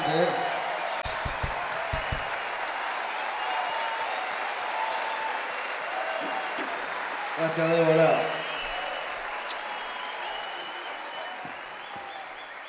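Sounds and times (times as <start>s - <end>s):
standing ovation applause from a crowd: 0.0s - 12.6s
low thumps: 1.0s - 2.4s
speech: 7.5s - 8.4s.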